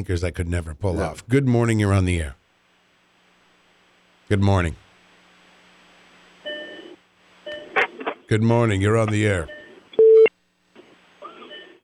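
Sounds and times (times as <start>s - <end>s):
speech: 0.0s - 2.4s, 4.3s - 4.8s, 8.3s - 9.6s
phone line noise and rustling from a butt-dial call: 5.1s - 8.3s, 10.6s - 11.8s
electronic telephone beep from an accidental butt-dial call: 9.5s - 10.3s.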